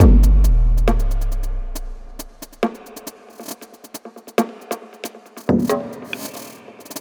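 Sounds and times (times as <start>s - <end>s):
drum n bass percussion loop: 0.0s - 6.9s.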